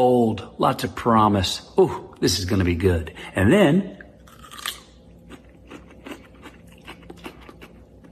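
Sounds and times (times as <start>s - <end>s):
speech: 0.0s - 4.0s
wet crunching chews of cucumber: 4.0s - 8.1s
biting into a crunchy cucumber: 4.2s - 8.1s.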